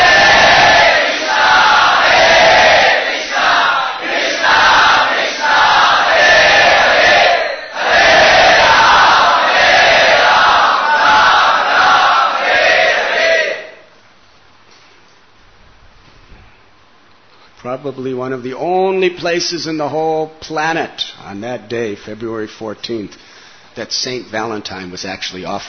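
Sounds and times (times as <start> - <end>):
crowd chanting holy names in Sankirtan at a Radha-Krishna festival: 0.0 - 13.9
speech: 17.8 - 25.6.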